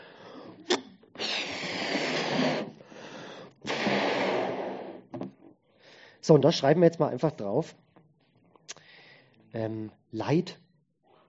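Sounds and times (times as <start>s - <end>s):
balloon being blown up: 0.7s - 5.2s
speech: 6.3s - 7.8s, 9.6s - 10.6s.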